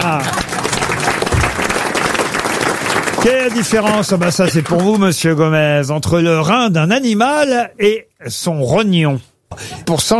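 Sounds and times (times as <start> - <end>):
audience applause: 0.0 - 5.1
speech: 3.2 - 10.1.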